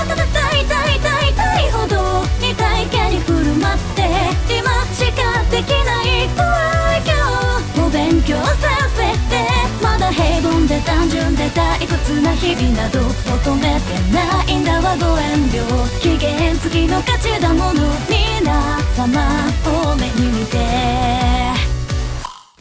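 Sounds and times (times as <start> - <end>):
Synthesizer V synthesized singing voice sample: 0.0 - 21.8.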